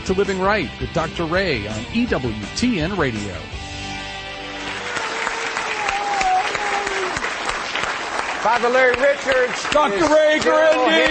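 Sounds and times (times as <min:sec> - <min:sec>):
speech: 0:00.1 - 0:03.7, 0:08.4 - 0:11.0
audience applause: 0:04.4 - 0:11.0.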